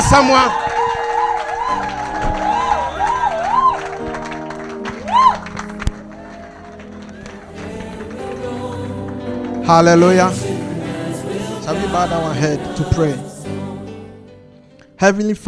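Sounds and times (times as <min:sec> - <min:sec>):
audience applauding in a standing ovation: 0:00.0 - 0:11.6
speech: 0:00.1 - 0:00.6, 0:09.7 - 0:10.6, 0:11.7 - 0:13.3, 0:15.0 - 0:15.4.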